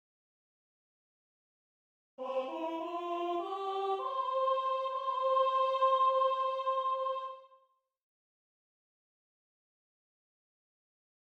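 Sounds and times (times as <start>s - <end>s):
soprano singing: 2.2s - 7.6s.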